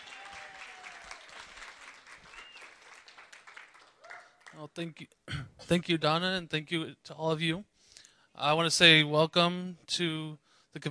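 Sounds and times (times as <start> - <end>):
convention audience in Sacramento applauding a chapter president's welcome: 0.0 - 4.6
speech: 4.6 - 7.7, 8.4 - 10.8.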